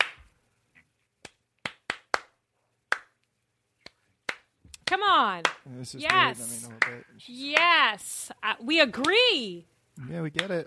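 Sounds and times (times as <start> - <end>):
a few people clapping at a rally: 0.0 - 0.3, 1.2 - 3.2, 3.8 - 7.8, 8.9 - 9.2, 10.3 - 10.6
speech: 5.0 - 10.6.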